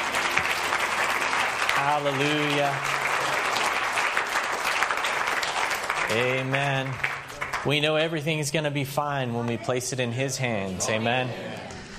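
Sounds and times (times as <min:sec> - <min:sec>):
audience hand clapping: 0:00.0 - 0:08.2
speech: 0:01.8 - 0:03.1, 0:06.1 - 0:11.7.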